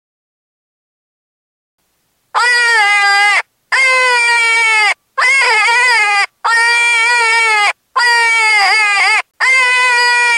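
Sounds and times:
cottontail rabbit distress screams: 2.4s - 10.3s.

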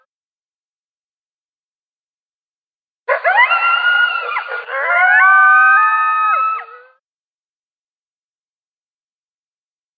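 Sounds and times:
single coyote yipping and howling: 3.1s - 6.9s.

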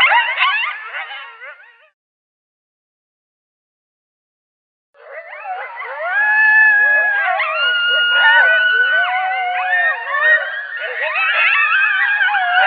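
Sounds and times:
coyote yipping chorus: 0.0s - 1.9s, 5.0s - 12.6s.

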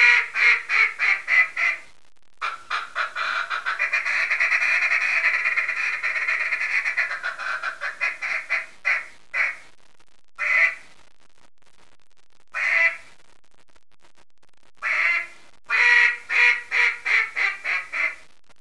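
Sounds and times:
mallard duck calls: 0.0s - 1.8s, 2.4s - 9.6s, 10.4s - 10.8s, 12.6s - 13.0s, 14.8s - 18.2s.

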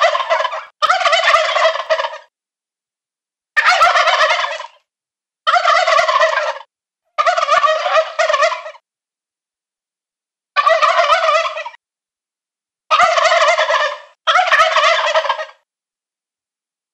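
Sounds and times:
adult male wild turkey gobbling: 0.0s - 2.3s, 3.6s - 4.8s, 5.5s - 8.8s, 10.6s - 11.8s, 12.9s - 15.6s.

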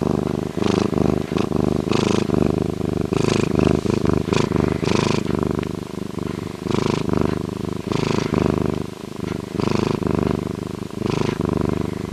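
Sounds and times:
bobcat purring: 0.0s - 12.1s.

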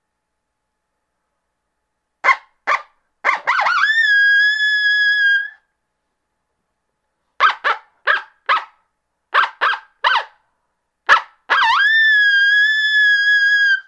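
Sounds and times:
coyote yipping and howling: 2.2s - 5.6s, 7.4s - 10.4s, 11.1s - 13.8s.

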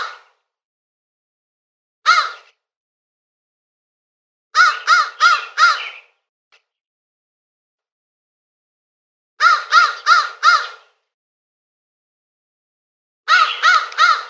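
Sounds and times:
crow cawing with harsh rasping notes: 2.1s - 2.5s, 4.6s - 6.0s, 9.4s - 11.0s, 13.3s - 14.2s.

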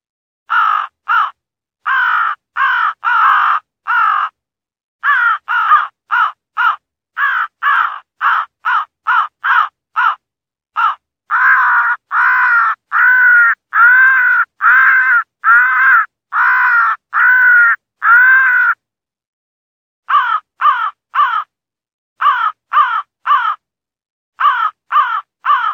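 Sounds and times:
fighting crow distress calls: 0.5s - 4.3s, 5.0s - 10.2s, 10.8s - 18.8s, 20.1s - 21.5s, 22.2s - 23.6s, 24.4s - 25.7s.

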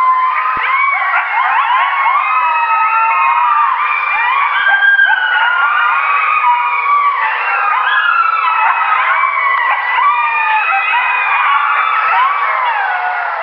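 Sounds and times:
coyote pups chorus of yips and howls: 0.0s - 13.4s.

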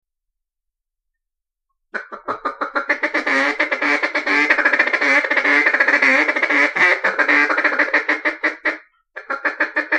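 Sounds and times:
mallard quacking: 2.0s - 9.9s.

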